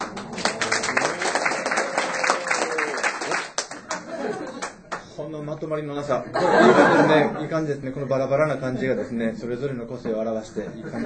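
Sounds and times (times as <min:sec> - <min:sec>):
scattered audience applause: 0:00.0 - 0:05.0
laughter: 0:03.8 - 0:04.8, 0:06.3 - 0:07.5, 0:10.6 - 0:11.0
speech: 0:05.6 - 0:11.0.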